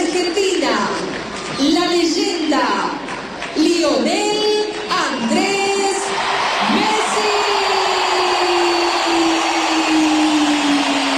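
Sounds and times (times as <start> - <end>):
huge stadium crowd roaring in a sustained ovation: 1.0 - 11.1.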